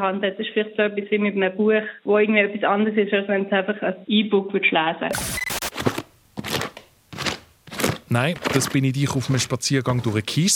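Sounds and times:
speech: 0:00.0 - 0:05.5, 0:08.1 - 0:10.5
hand sweeping across rows of CD cases: 0:05.9 - 0:08.9.

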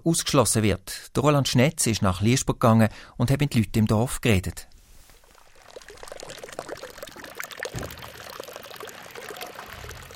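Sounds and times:
speech: 0:00.0 - 0:04.7
village fountain water splashing: 0:05.2 - 0:10.1.

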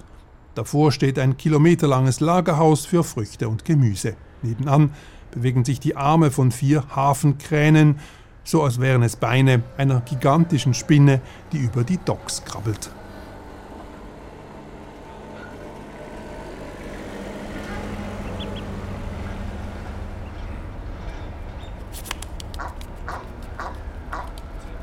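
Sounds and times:
speech: 0:00.6 - 0:13.0
forklift stacking crates of manure: 0:09.0 - 0:21.8
ducks quacking: 0:17.5 - 0:21.4, 0:22.5 - 0:24.4.

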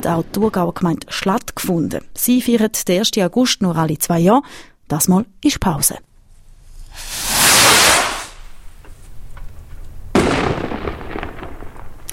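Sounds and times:
speech: 0:00.0 - 0:06.1
fireworks: 0:06.9 - 0:08.6, 0:10.1 - 0:12.1.

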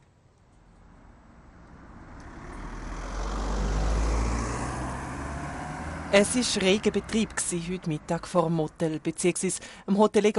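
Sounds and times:
steady road traffic noise: 0:00.0 - 0:09.9
vehicle passing by with deep engine rumble: 0:00.9 - 0:08.7
speech: 0:06.1 - 0:10.3.

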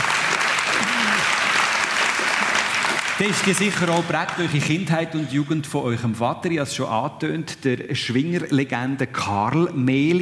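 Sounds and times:
audience applause: 0:00.0 - 0:04.7
speech: 0:03.2 - 0:10.1.

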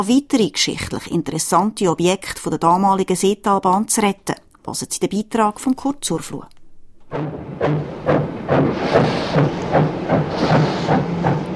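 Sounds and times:
speech: 0:00.0 - 0:11.2
old steam locomotive steaming: 0:08.2 - 0:11.5.

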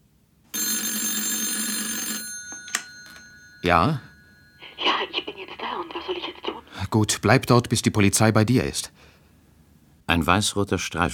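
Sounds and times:
telephone bell ringing: 0:00.5 - 0:06.0
speech: 0:03.6 - 0:04.1, 0:06.9 - 0:09.1, 0:10.1 - 0:11.1.

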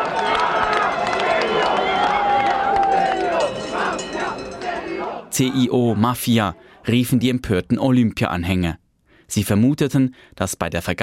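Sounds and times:
shouts and whistles: 0:00.0 - 0:05.6
large crowd cheering: 0:00.0 - 0:06.9
speech: 0:05.4 - 0:11.0.

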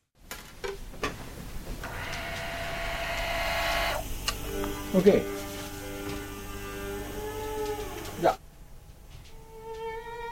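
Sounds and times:
record-cutting lathe starting up as its stylus begins to cut: 0:01.8 - 0:08.4
speech: 0:04.9 - 0:05.4.

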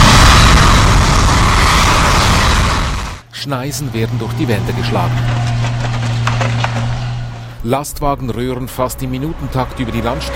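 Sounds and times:
gas flames roaring out of the ground: 0:00.0 - 0:07.6
speech: 0:03.4 - 0:05.7, 0:07.6 - 0:10.3.

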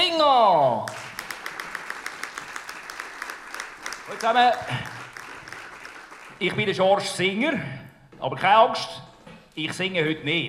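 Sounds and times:
audience applause: 0:00.8 - 0:06.8
speech: 0:04.2 - 0:05.0, 0:06.4 - 0:09.0, 0:09.6 - 0:10.4.

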